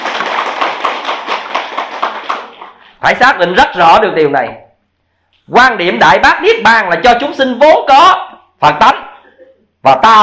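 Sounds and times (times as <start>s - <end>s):
audience applause at a Buddhist sutra lecture: 0.0s - 2.8s
speech: 3.0s - 4.6s, 5.5s - 9.0s, 9.8s - 10.2s.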